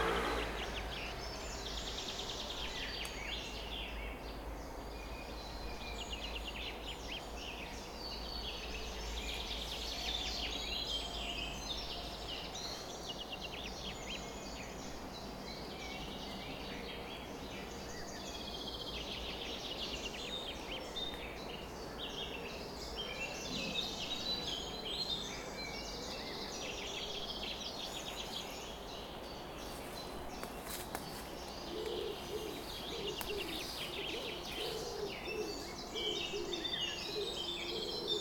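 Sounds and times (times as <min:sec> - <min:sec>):
birds in a dawn chorus chirping and trilling: 0:00.0 - 0:38.1
steady hiss: 0:00.0 - 0:38.1
soft low cooing: 0:31.7 - 0:38.1.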